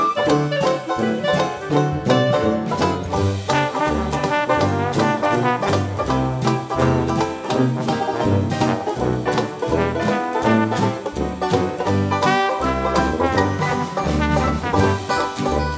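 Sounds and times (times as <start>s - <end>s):
fast music: 0.0s - 15.7s.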